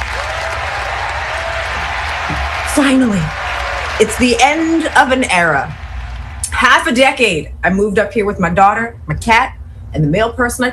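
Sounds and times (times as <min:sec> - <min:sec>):
applause: 0:00.0 - 0:06.6
speech: 0:02.8 - 0:03.4, 0:04.0 - 0:05.8, 0:06.6 - 0:10.7.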